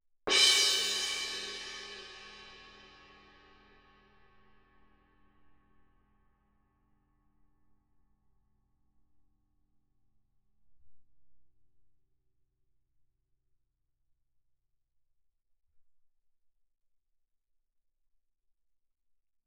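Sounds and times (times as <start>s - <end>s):
suspended cymbal crash with mallet: 0.3s - 3.9s.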